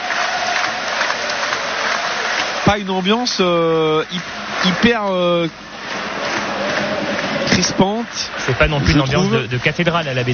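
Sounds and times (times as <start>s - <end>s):
crowd noise at a football match: 0.0s - 10.3s
subdued applause from Auxerre football supporters at a match: 0.0s - 10.3s
speech: 2.7s - 5.7s, 7.6s - 10.3s.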